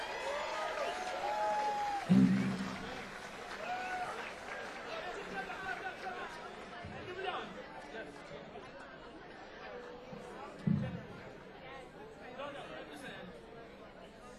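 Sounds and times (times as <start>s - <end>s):
audience applause: 0.0s - 8.8s.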